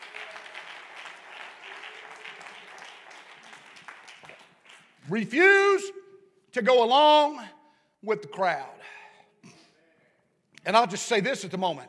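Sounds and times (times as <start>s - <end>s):
audience clapping: 0.0s - 5.4s
speech: 5.1s - 6.0s, 6.6s - 8.8s, 10.6s - 11.8s.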